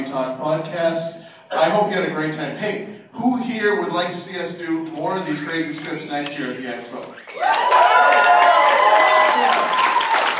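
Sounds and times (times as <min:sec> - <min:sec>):
speech: 0:00.1 - 0:09.8
audience clapping at an expo stage show: 0:06.9 - 0:10.3
crowd voices and cheering at an expo stage show: 0:07.1 - 0:10.3.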